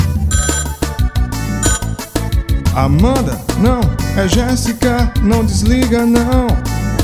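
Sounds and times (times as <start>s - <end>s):
melodic electronic telephone ringtone while a call is placed: 0.3s - 2.2s
speech: 2.8s - 6.7s.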